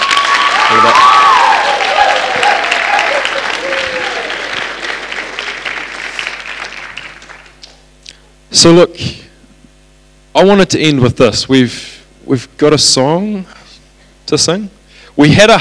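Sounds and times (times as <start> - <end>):
audience applause: 0.0 - 7.8
speech: 0.8 - 1.1, 8.6 - 9.2, 10.4 - 13.6, 14.3 - 15.5.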